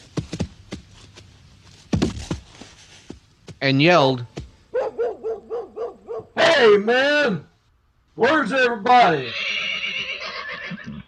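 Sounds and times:
hoofbeats of a horse on a dusty road, radio-drama effect: 0:00.0 - 0:05.2
speech: 0:03.6 - 0:04.4, 0:06.6 - 0:07.5, 0:08.2 - 0:09.4.

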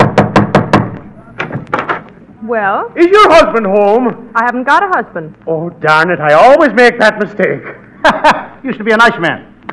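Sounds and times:
knocking on a door: 0:00.0 - 0:01.0
speech: 0:02.5 - 0:09.5
laughter: 0:07.6 - 0:08.6.

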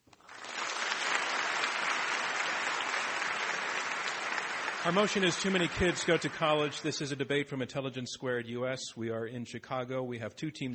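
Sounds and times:
audience round of applause: 0:00.1 - 0:07.2
speech: 0:04.8 - 0:10.7.

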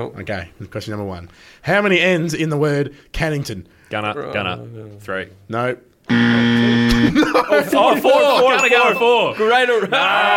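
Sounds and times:
speech: 0:00.0 - 0:10.3
quiz buzzer: 0:06.1 - 0:07.2
laughter: 0:06.9 - 0:10.3.

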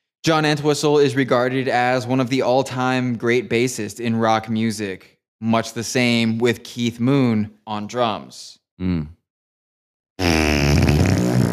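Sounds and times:
speech: 0:00.2 - 0:09.2
fart: 0:10.2 - 0:11.5.

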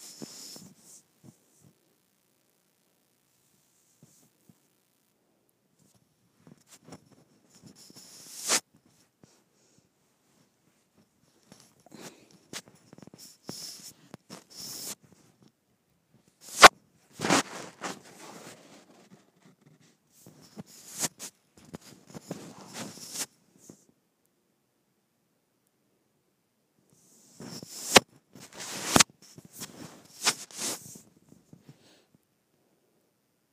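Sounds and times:
microphone rubbed against skin: 0:00.0 - 0:01.8, 0:03.8 - 0:04.6, 0:05.8 - 0:15.5, 0:16.4 - 0:23.8, 0:27.0 - 0:31.9.

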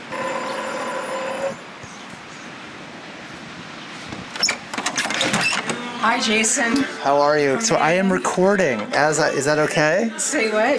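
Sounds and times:
door buzzer ringing: 0:00.0 - 0:06.8
speech: 0:06.0 - 0:10.7.

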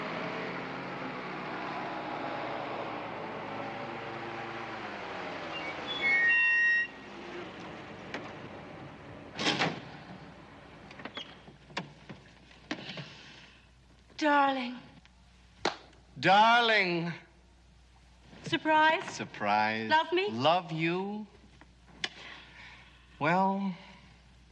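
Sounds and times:
car engine hum of a car pulling up in a film scene: 0:00.0 - 0:12.5
speech: 0:14.2 - 0:14.8, 0:16.2 - 0:17.2, 0:18.5 - 0:21.3, 0:23.2 - 0:23.8.

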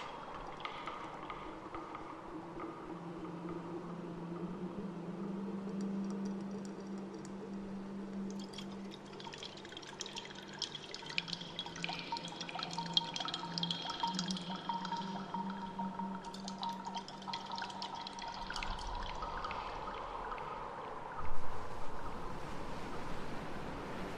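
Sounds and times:
bright crackling and dripping: 0:00.0 - 0:24.1
low sustained hum: 0:00.0 - 0:24.1
underwater water sounds: 0:00.0 - 0:24.1.

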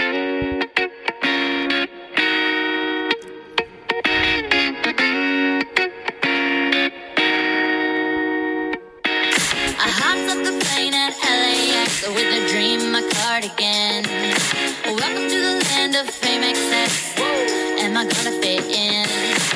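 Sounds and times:
processed pop song snippet with synth tones: 0:00.0 - 0:19.5.

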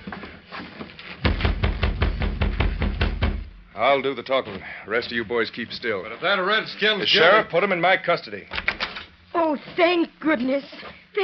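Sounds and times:
knocking on a door: 0:01.2 - 0:03.6
speech: 0:03.8 - 0:08.6, 0:09.4 - 0:11.2.

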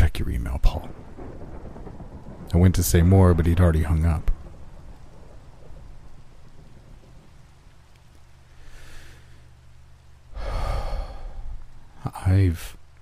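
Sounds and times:
rain: 0:00.0 - 0:13.0
thunder: 0:00.8 - 0:07.6
speech: 0:02.6 - 0:04.3, 0:12.3 - 0:12.8.

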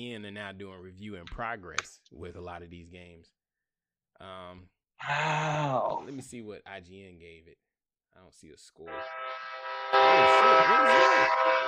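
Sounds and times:
speech: 0:00.0 - 0:03.4, 0:04.2 - 0:11.6
passing train horn blaring: 0:08.9 - 0:11.6.

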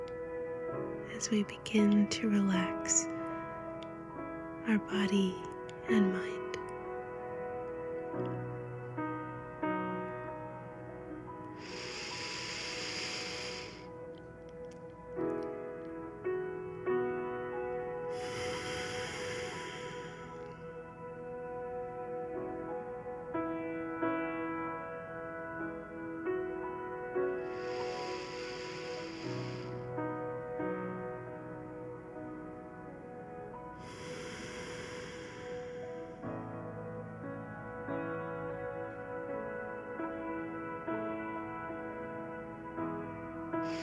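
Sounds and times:
sustained music: 0:00.0 - 0:43.8
speech: 0:01.2 - 0:03.2, 0:04.7 - 0:06.4
slow deep breaths during a guided relaxation: 0:10.7 - 0:15.4, 0:17.9 - 0:21.0, 0:27.2 - 0:30.3, 0:33.6 - 0:36.8, 0:43.6 - 0:43.8.

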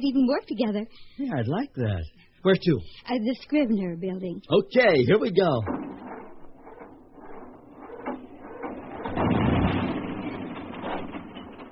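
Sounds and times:
speech: 0:00.0 - 0:05.9
badly tuned car engine running with an uneven mechanical rattle: 0:05.7 - 0:11.6.

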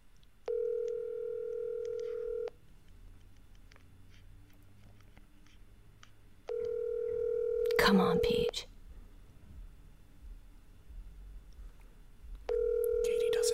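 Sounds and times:
faint noise: 0:00.0 - 0:13.5
phone ringing out on a call: 0:00.5 - 0:02.5, 0:06.5 - 0:08.5, 0:12.5 - 0:13.5
speech: 0:07.9 - 0:08.7.

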